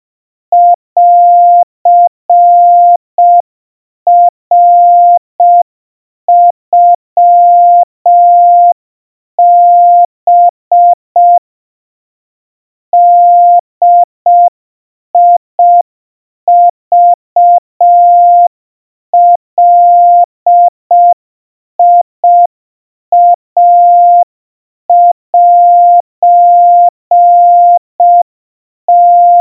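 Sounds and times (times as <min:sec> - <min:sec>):
700 Hz Morse code tones: 0:00.6 - 0:03.4, 0:04.1 - 0:05.7, 0:06.3 - 0:08.8, 0:09.4 - 0:11.4, 0:13.0 - 0:14.5, 0:15.2 - 0:15.8, 0:16.5 - 0:18.5, 0:19.2 - 0:21.2, 0:23.1 - 0:24.3, 0:24.9 - 0:28.3, 0:28.9 - 0:29.3.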